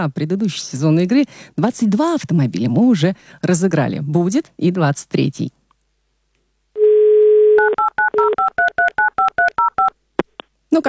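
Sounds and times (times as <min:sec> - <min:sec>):
speech: 0:00.0 - 0:05.6
dial tone: 0:06.8 - 0:09.9
telephone keypad beeps: 0:07.6 - 0:10.4.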